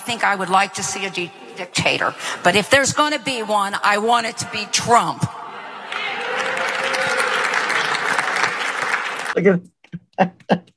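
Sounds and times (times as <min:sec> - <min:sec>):
speech: 0:00.1 - 0:05.4, 0:09.4 - 0:10.7
audience applause: 0:05.4 - 0:09.4.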